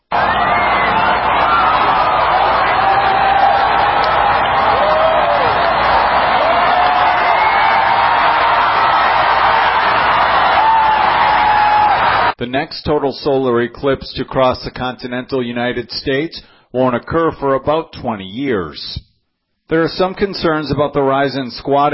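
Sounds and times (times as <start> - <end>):
large crowd cheering and shouting: 0.0 - 12.4
speech: 12.6 - 19.1, 19.7 - 21.9.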